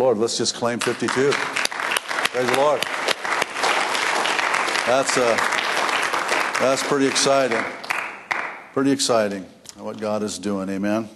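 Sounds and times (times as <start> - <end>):
speech: 0.0 - 3.1, 4.8 - 5.6, 6.6 - 7.8, 8.8 - 11.1
audience clapping: 0.7 - 8.7.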